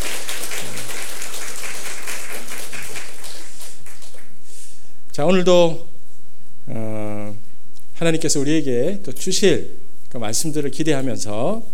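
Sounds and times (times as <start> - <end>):
room full of people applauding in welcome: 0.0 - 4.4
speech: 5.2 - 5.9, 6.7 - 7.0, 8.0 - 11.7.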